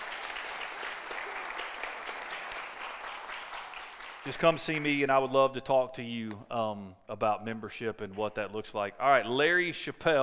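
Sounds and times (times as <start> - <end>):
audience applause: 0.0 - 4.4
speech: 4.2 - 10.2.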